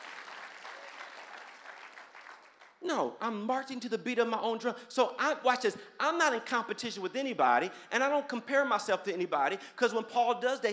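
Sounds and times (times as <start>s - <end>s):
congregation clapping in a church: 0.0s - 2.8s
speech: 2.8s - 10.7s.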